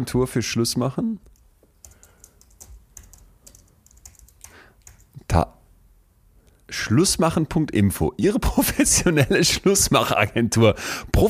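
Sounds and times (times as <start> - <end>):
speech: 0.0 - 1.3, 6.9 - 11.2
typing on a computer keyboard while entering a web search: 1.3 - 5.2.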